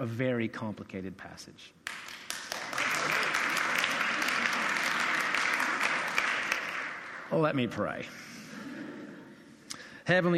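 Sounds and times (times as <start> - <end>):
speech: 0.0 - 2.0, 7.3 - 8.4, 10.1 - 10.3
audience applause: 1.9 - 7.3.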